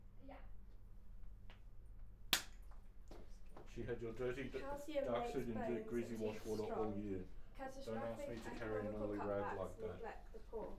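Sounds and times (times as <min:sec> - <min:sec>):
hand clap: 0:02.3 - 0:02.6
speech: 0:03.8 - 0:10.7.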